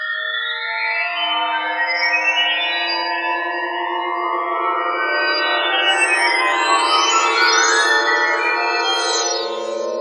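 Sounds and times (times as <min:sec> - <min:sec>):
bell chime: 0:00.1 - 0:09.9.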